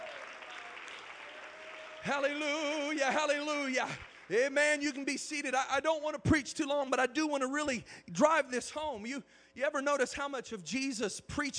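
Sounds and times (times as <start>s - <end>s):
audience clapping hands: 0.0s - 5.2s
speech: 2.0s - 11.5s.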